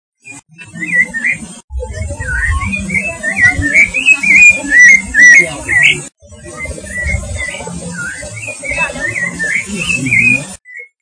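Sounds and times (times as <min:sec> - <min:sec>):
nature sounds: 0:00.2 - 0:10.9.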